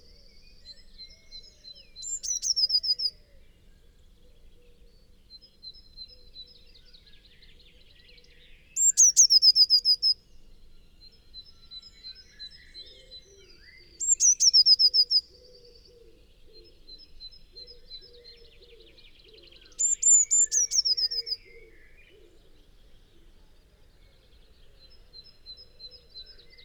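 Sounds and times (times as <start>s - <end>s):
Eurasian blue tit Cyanistes caeruleus song: 0.0s - 26.6s.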